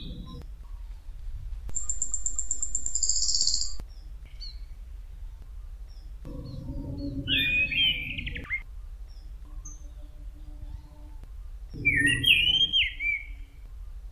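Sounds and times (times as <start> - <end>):
thrush song: 5.5 - 14.1.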